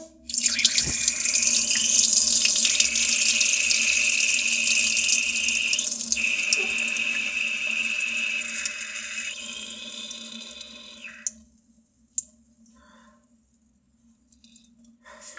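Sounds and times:
person urinating in a toilet after dinner: 0.2 - 11.4.

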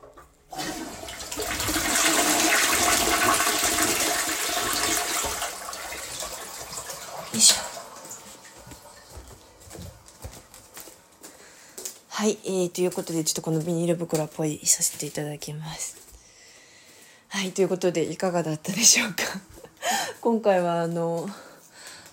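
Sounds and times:
toilet flushing: 0.0 - 9.6
speech: 12.2 - 16.1, 17.4 - 19.6, 20.2 - 21.5.

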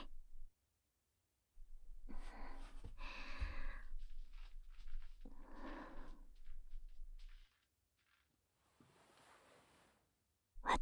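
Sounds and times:
cream ear massage sounds: 1.7 - 7.5, 8.7 - 10.0.

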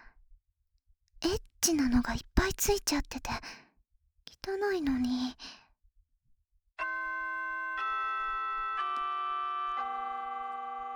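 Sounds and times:
speech: 1.2 - 3.6, 4.4 - 5.6
school chime ringing: 6.8 - 10.9.

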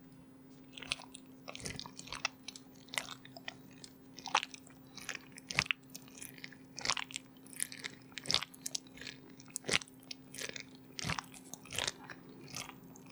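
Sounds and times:
slow wet squishing: 0.5 - 13.1.

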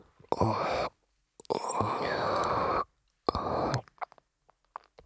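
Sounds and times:
sleep breathing: 0.3 - 4.0.

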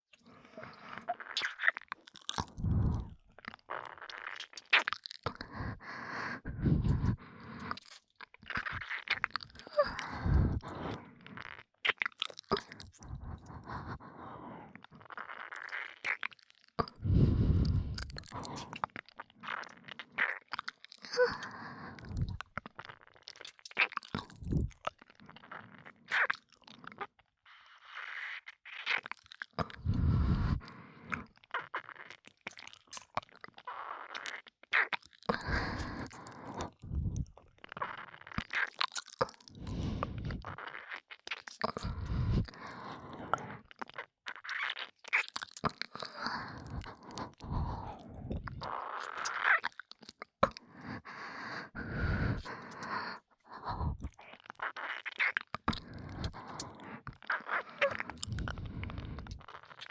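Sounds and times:
relaxed breathing: 0.2 - 1.1, 2.4 - 3.2, 5.3 - 7.9, 9.7 - 11.5, 12.6 - 15.1, 16.8 - 18.8, 21.0 - 22.4, 24.2 - 25.7, 29.6 - 31.3, 35.3 - 37.4, 39.3 - 40.6, 41.6 - 43.7, 45.9 - 48.8, 50.4 - 54.2, 55.7 - 59.6
ear licking sounds: 0.6 - 27.1, 27.8 - 59.9.

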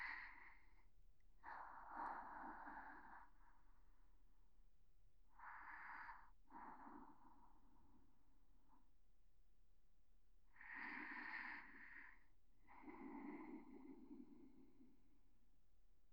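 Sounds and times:
person breathing in sleep: 0.0 - 0.7, 1.4 - 4.1, 5.3 - 8.4, 10.5 - 15.2.

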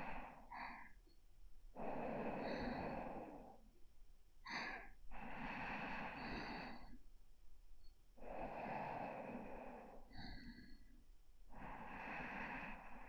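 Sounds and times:
sleeping breath: 1.7 - 3.7, 4.5 - 7.0, 8.2 - 13.0.

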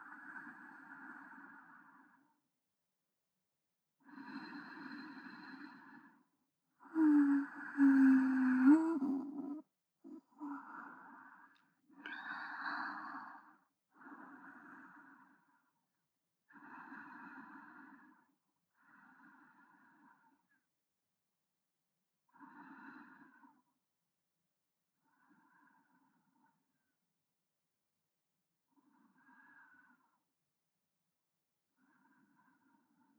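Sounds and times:
breathing of a person lying alongside, centred: 0.0 - 2.4, 4.0 - 15.8, 16.5 - 20.6, 22.3 - 23.7, 25.0 - 26.6, 28.8 - 30.3, 31.8 - 33.1.

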